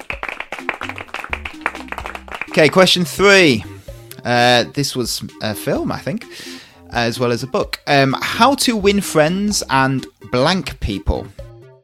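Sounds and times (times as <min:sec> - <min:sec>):
round of applause from a small group: 0:00.0 - 0:03.0
speech: 0:02.6 - 0:11.4.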